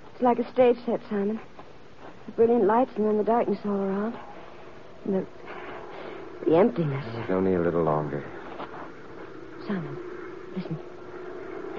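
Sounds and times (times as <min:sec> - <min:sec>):
speech: 0:00.2 - 0:01.5, 0:02.3 - 0:04.3, 0:05.0 - 0:05.4, 0:06.5 - 0:08.4, 0:09.7 - 0:10.9
small airplane engine approaching: 0:07.1 - 0:11.7.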